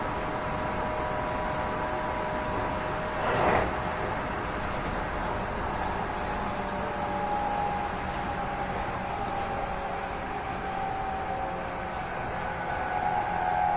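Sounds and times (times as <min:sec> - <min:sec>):
Yokosuka Sobu Rapid 253 train: 0:00.0 - 0:13.7.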